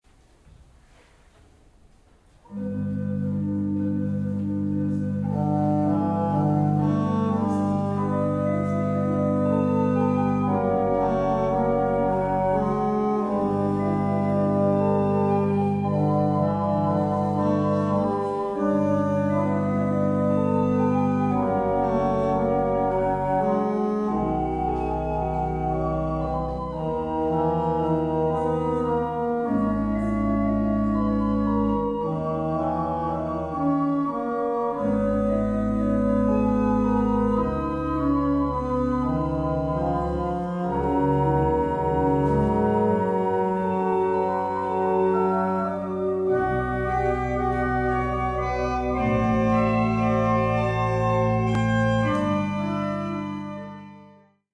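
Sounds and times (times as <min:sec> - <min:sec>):
pipe organs: 0:02.4 - 0:54.5.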